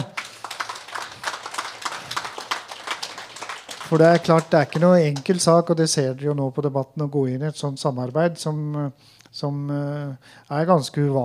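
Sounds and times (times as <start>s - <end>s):
applause: 0.0s - 5.6s
speech: 3.9s - 11.2s.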